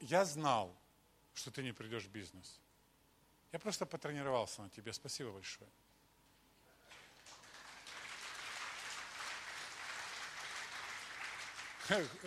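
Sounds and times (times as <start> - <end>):
speech: 0.1 - 0.8, 1.4 - 2.7, 3.5 - 5.8, 11.9 - 12.2
audience member clapping: 6.9 - 12.2.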